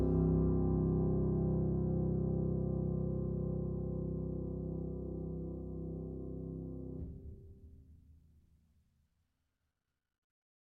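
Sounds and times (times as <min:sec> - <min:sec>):
keyboard: 0:00.0 - 0:07.4.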